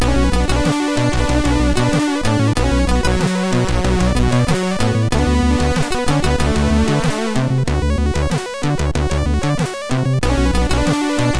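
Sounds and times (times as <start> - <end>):
MOS 6581R2 SID chip music: 0.0 - 11.3.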